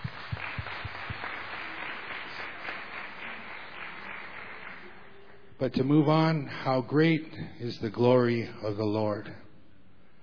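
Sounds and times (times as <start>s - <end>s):
audience applause for a choir: 0.0s - 5.4s
speech: 5.6s - 9.4s.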